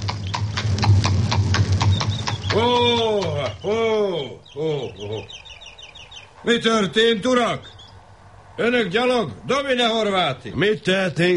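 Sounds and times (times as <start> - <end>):
horse hooves clip-clopping as a rider approaches: 0.0 - 3.6
speech: 3.6 - 5.4, 6.4 - 7.8, 8.6 - 11.3.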